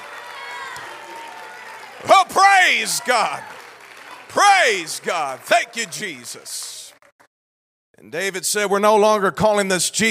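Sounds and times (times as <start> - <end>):
audience clapping: 0.0 - 7.3
speech: 2.3 - 3.6, 4.4 - 6.8, 8.0 - 10.0.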